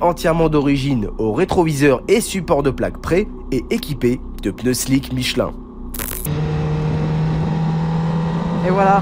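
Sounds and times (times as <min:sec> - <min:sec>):
speech: 0:00.0 - 0:05.6, 0:08.6 - 0:09.0
stock Honda Fireblade inline-four motorcycle accelerating out of the pit lane: 0:03.6 - 0:09.0.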